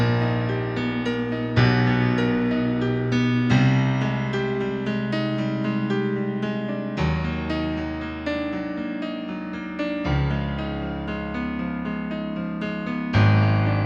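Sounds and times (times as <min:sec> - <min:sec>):
piano in 94-EDO tuning: 0:00.0 - 0:13.8.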